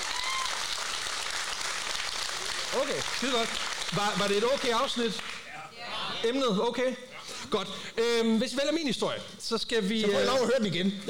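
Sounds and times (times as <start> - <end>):
audience clapping: 0.0 - 5.5
speech: 2.7 - 11.0.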